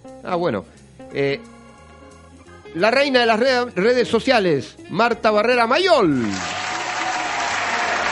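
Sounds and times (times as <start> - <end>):
speech: 0.2 - 1.6, 2.7 - 6.5
audience applause: 6.1 - 8.1.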